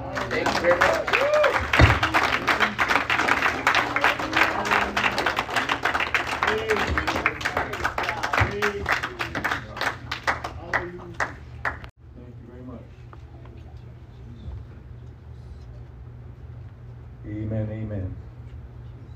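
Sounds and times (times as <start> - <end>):
audience applause: 0.0 - 11.9
speech: 0.4 - 1.2.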